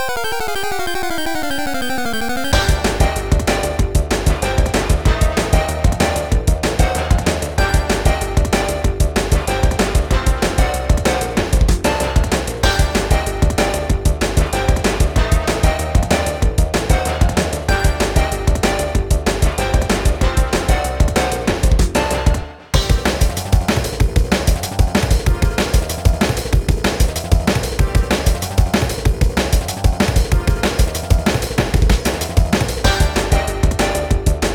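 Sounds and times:
instrumental music: 0:00.0 - 0:34.5.

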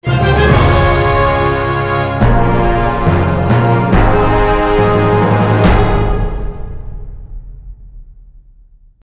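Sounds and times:
boss victory music: 0:00.0 - 0:08.8.

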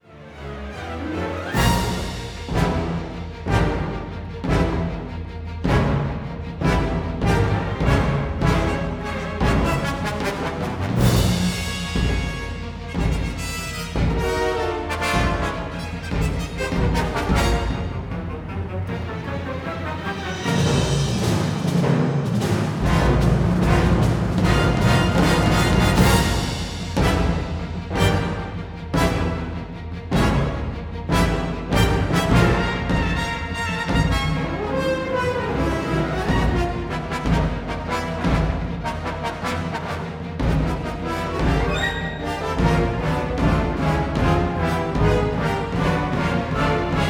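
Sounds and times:
tense music: 0:00.2 - 0:47.0.

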